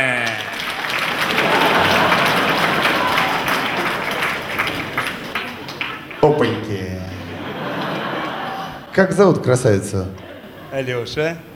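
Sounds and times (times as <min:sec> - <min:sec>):
enthusiastic applause from audience: 0:00.0 - 0:08.9
laughter: 0:00.0 - 0:11.5
speech: 0:09.0 - 0:11.5.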